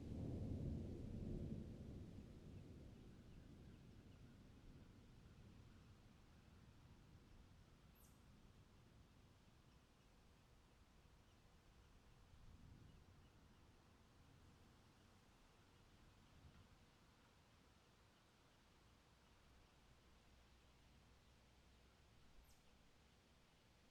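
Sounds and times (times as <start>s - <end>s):
thunderstorm: 0.0s - 5.2s.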